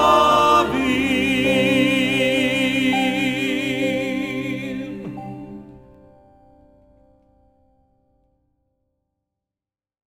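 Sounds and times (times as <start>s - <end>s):
music mix: 0.0s - 7.4s.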